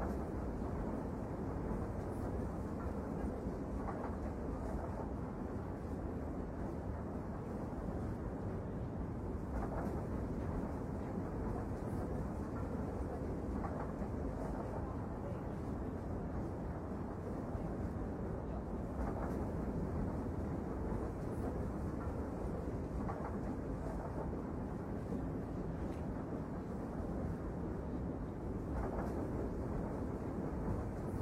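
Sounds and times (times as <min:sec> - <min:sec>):
train rolling with a low rumble: 0:00.0 - 0:31.2.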